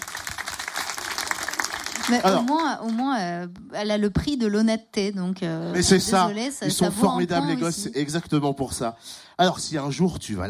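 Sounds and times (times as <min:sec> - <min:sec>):
applause: 0:00.0 - 0:03.2
speech: 0:02.1 - 0:10.4.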